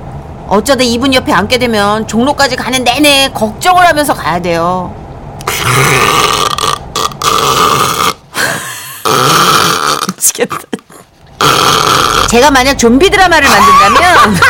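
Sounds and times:
speech: 0:00.5 - 0:05.0, 0:05.6 - 0:06.1, 0:12.3 - 0:14.4
loud snoring: 0:05.4 - 0:10.2, 0:11.4 - 0:12.4
laughter: 0:13.4 - 0:14.4.

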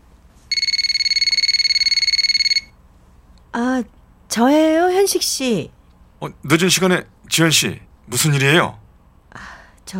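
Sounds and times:
phone ringing with electronic trill: 0:00.5 - 0:02.8
speech: 0:03.8 - 0:09.9.

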